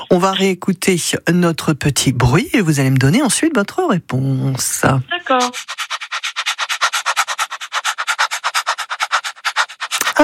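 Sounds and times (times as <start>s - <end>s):
speech: 0.0s - 6.0s
dog panting rapidly: 5.3s - 10.2s.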